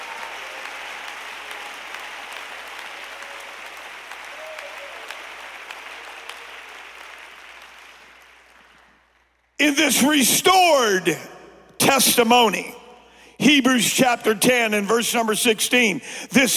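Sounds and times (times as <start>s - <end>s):
audience clapping hands: 0.0s - 9.6s
speech: 9.6s - 11.3s, 11.9s - 12.8s, 13.4s - 16.5s.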